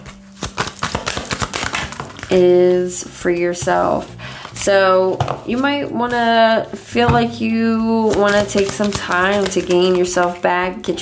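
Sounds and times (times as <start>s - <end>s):
tarot cards snapping and flicking drawn from a deck: 0.3s - 2.4s, 8.1s - 10.1s
speech: 2.3s - 11.0s.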